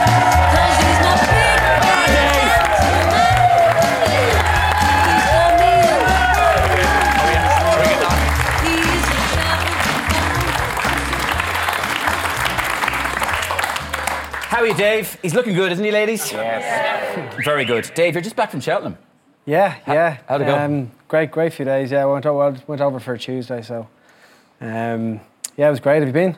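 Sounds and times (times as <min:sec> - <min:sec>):
whoops: 0:00.0 - 0:08.2
studio audience applauding and cheering an Irish rugby player: 0:00.0 - 0:15.2
speech: 0:14.8 - 0:24.0, 0:24.6 - 0:26.3.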